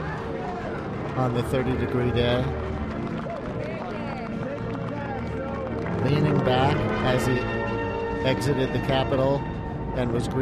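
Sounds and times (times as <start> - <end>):
scattered clapping: 0.0 - 7.8
large crowd cheering: 0.0 - 8.9
speech: 1.2 - 2.8, 6.0 - 7.6, 8.2 - 10.4.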